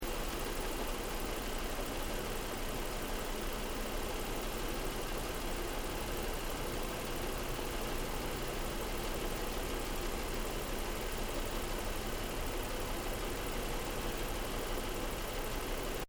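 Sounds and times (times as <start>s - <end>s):
Nissan 350Z manual sportscar engine bay idling: 0.0s - 16.0s.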